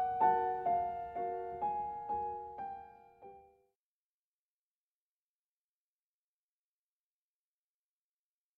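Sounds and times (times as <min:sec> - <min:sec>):
piano fourth movement: 0:00.0 - 0:03.7.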